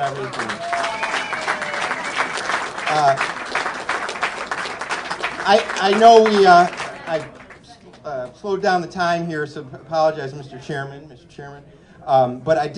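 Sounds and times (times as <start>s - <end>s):
speech: 0.0s - 1.0s, 2.9s - 3.4s, 5.5s - 7.4s, 8.1s - 12.7s
audience applause: 0.0s - 7.8s.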